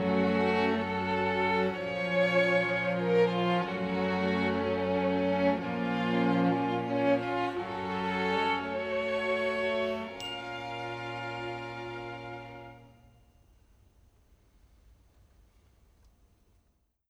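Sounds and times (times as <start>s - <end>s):
orchestra playing alone: 0.0s - 13.1s.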